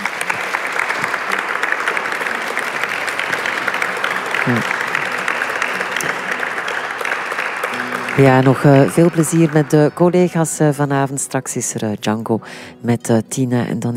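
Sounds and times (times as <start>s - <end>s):
sustained audience applause: 0.0s - 11.0s
murmur of voices: 0.0s - 11.3s
speech: 4.5s - 4.7s, 8.2s - 13.9s.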